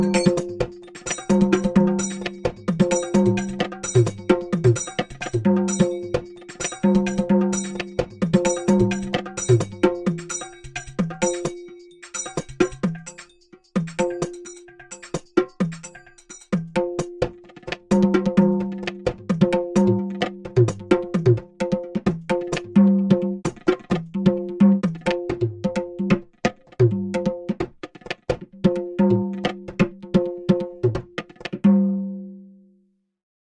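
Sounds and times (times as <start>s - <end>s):
bells: 0.0s - 16.6s
bongos: 0.0s - 32.5s.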